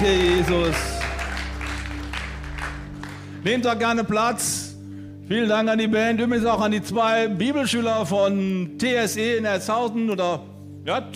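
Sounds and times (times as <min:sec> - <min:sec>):
speech: 0:00.0 - 0:01.0, 0:03.4 - 0:04.7, 0:05.3 - 0:11.1
audience applause: 0:00.0 - 0:03.4.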